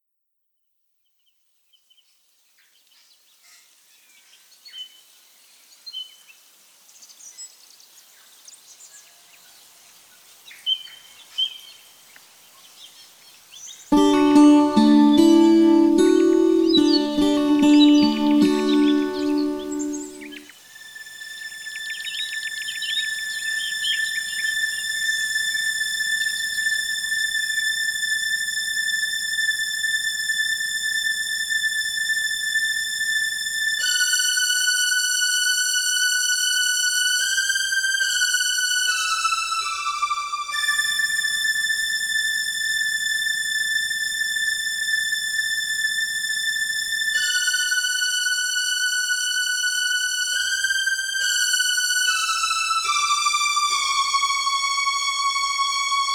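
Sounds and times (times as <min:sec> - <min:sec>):
strings: 0:13.9 - 0:56.1.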